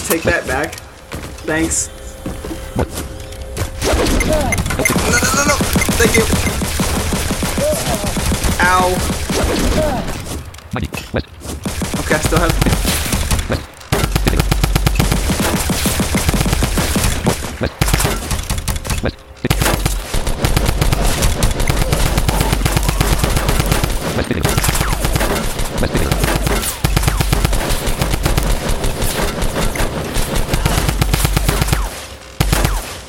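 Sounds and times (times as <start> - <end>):
speech: 0.1 - 0.9, 1.5 - 2.0, 2.8 - 3.1, 4.0 - 5.3, 6.0 - 6.6, 8.7 - 10.1, 10.8 - 11.4, 12.1 - 13.7
rapid automatic gunfire in a video game: 4.9 - 9.8, 11.7 - 18.8, 19.6 - 32.9.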